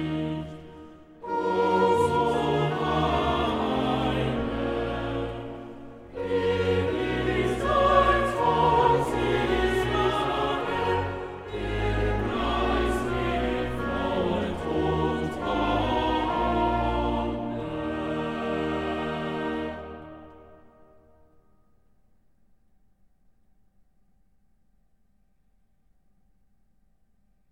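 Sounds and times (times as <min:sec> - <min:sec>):
choir singing a chorale: 0:00.0 - 0:21.0.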